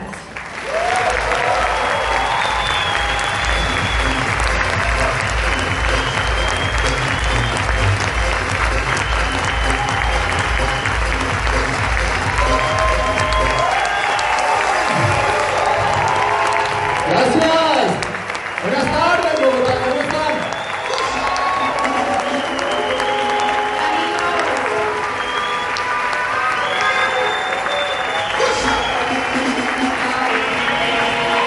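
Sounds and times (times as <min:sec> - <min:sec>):
large crowd applause: 0:00.2 - 0:31.4
cheers and whistles: 0:00.6 - 0:08.1, 0:08.7 - 0:11.3, 0:12.3 - 0:17.8, 0:19.8 - 0:31.4.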